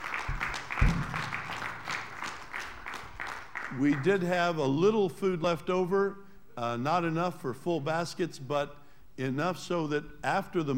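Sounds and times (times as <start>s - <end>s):
audience applause: 0.0s - 4.2s
speech: 3.7s - 10.7s.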